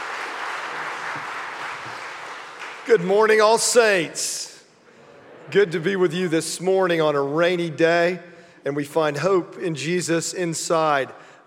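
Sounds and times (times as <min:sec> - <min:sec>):
church congregation clapping to welcome a guest preacher: 0:00.0 - 0:04.0
speech: 0:02.9 - 0:04.5, 0:05.5 - 0:11.3.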